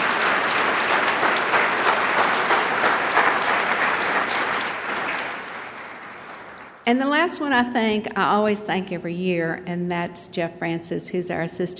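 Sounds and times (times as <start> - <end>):
big round of applause: 0.0 - 6.8
speech: 6.9 - 11.7.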